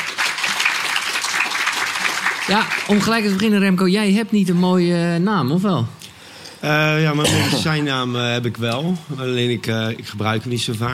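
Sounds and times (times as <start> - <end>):
audience applause: 0.0 - 3.6
speech: 2.5 - 6.0, 6.6 - 10.9.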